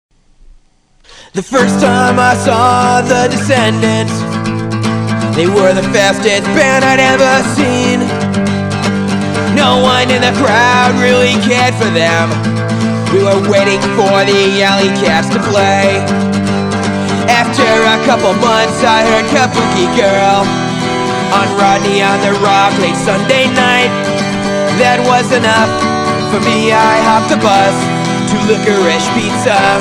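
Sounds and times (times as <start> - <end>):
acoustic music: 0.3 - 29.8.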